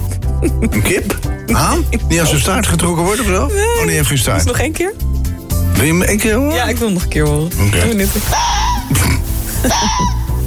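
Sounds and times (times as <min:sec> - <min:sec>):
speech: 0:00.4 - 0:05.2, 0:05.8 - 0:09.0, 0:09.6 - 0:10.2
fox calling: 0:08.3 - 0:09.0, 0:09.6 - 0:10.4.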